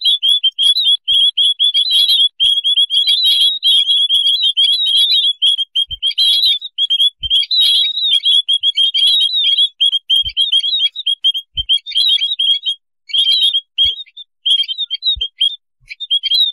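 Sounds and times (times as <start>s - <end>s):
white-headed munia chirping: 0.0s - 16.5s.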